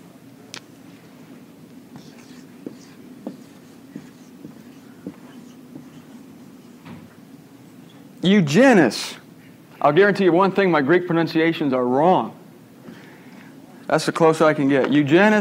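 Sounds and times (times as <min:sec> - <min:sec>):
writing a Greek word on a board: 0:01.9 - 0:08.0
speech: 0:08.2 - 0:09.2, 0:09.8 - 0:12.4, 0:13.9 - 0:15.3.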